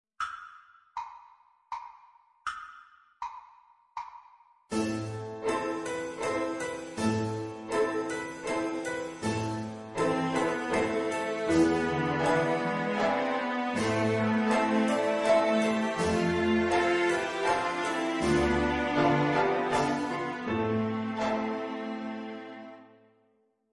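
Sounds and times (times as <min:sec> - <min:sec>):
violin accompaniment: 0:04.7 - 0:22.9.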